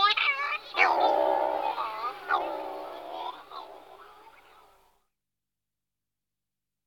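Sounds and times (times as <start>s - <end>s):
Calonectris diomedea calling: 0.1s - 4.6s.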